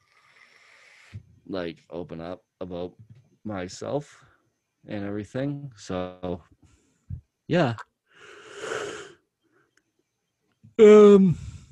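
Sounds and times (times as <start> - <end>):
speech: 1.5 - 6.6, 7.5 - 7.9, 10.8 - 11.4
yawn: 8.3 - 9.2, 10.8 - 11.7.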